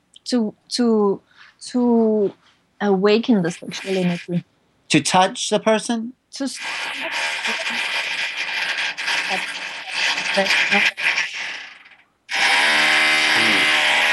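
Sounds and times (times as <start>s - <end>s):
speech: 0.3s - 7.9s, 9.3s - 9.5s, 10.4s - 11.1s
drilling picked up over an open microphone: 6.6s - 14.1s.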